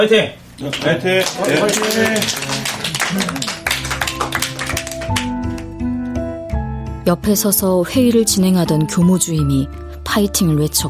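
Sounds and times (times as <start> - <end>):
speech: 0.0 - 3.6, 7.1 - 10.8
few people clapping reluctantly: 0.7 - 5.9.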